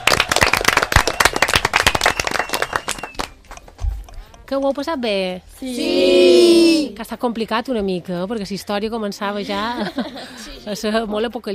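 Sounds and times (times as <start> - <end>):
children applauding: 0.0 - 3.4
speech: 4.5 - 11.5
laughter: 9.4 - 10.8.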